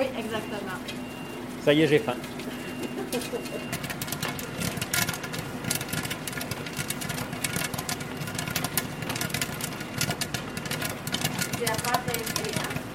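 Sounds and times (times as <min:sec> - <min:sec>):
low mechanical hum: 0:00.0 - 0:12.9
speech: 0:01.6 - 0:02.5, 0:03.1 - 0:03.9
popcorn kernels popping and tumbling in a pot: 0:02.8 - 0:12.9.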